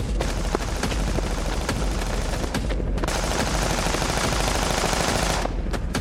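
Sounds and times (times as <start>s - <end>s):
gunfire: 0.2s - 5.9s.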